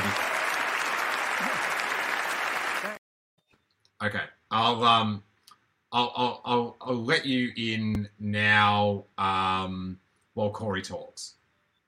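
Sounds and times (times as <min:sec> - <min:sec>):
applause sound effect: 0:00.0 - 0:03.0
speech: 0:04.0 - 0:05.3, 0:05.9 - 0:11.4.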